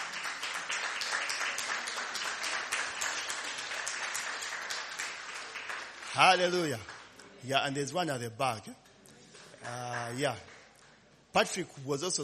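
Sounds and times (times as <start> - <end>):
crowd clapping for worship team: 0.0 - 7.4, 9.4 - 11.0
speech: 6.2 - 8.8, 9.6 - 10.5, 11.3 - 12.2.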